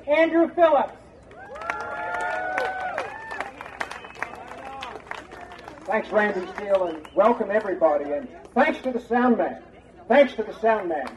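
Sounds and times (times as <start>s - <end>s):
speech: 0.1s - 1.0s, 5.9s - 11.1s
people cheering and raised voices: 1.3s - 7.5s
audience applause welcoming a speaker at an event: 1.3s - 7.8s
whistles: 3.6s - 4.5s, 6.8s - 7.4s.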